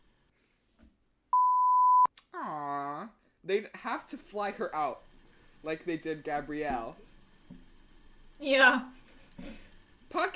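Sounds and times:
censor bleep over a spoken name: 1.3s - 2.1s
speech: 3.5s - 7.1s, 8.4s - 9.6s, 10.2s - 10.3s.

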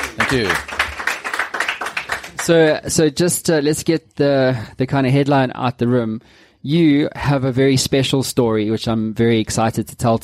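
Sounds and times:
audience applause: 0.0s - 2.8s
speech: 0.3s - 0.7s, 2.4s - 10.2s.

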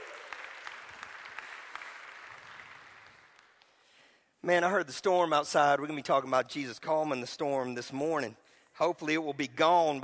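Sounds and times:
room full of people applauding: 0.0s - 3.5s
speech: 4.4s - 10.0s.

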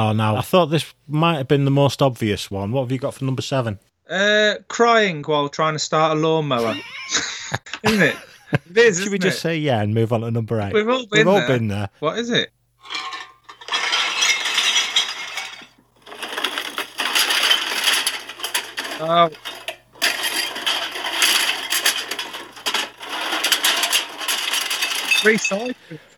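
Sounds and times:
speech: 0.0s - 13.1s, 19.0s - 19.5s, 25.2s - 26.1s
laughter: 6.6s - 9.4s
recycling glass bottles and cans clinking: 12.8s - 26.0s.

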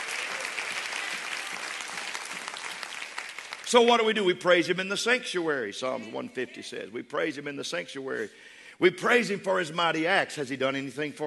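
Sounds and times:
people clapping: 0.0s - 4.2s
speech: 3.7s - 11.2s.

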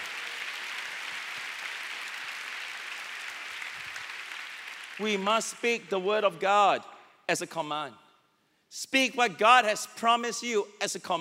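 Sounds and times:
audience clapping: 0.0s - 5.5s
speech: 5.0s - 8.0s, 8.7s - 11.1s.

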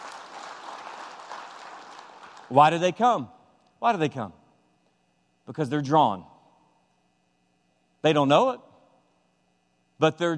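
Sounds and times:
soft polite golf clap applause from a group: 0.0s - 2.8s
speech: 2.5s - 4.4s, 5.5s - 6.3s, 8.0s - 8.7s, 10.0s - 10.3s.

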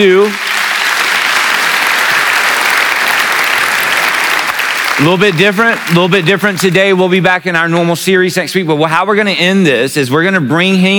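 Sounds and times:
speech: 0.0s - 0.5s, 5.0s - 10.9s
church congregation applauding during a commissioning service: 0.0s - 7.2s.

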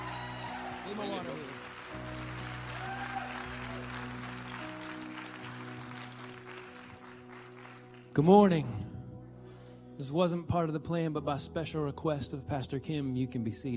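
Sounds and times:
church congregation clapping to welcome a speaker: 0.0s - 8.3s
speech: 0.9s - 2.5s, 8.2s - 8.9s, 10.0s - 13.7s.

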